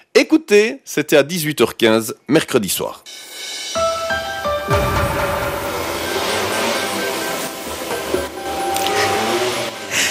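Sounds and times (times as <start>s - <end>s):
speech: 0.2s - 3.3s
vehicle passing in the street: 4.7s - 10.1s.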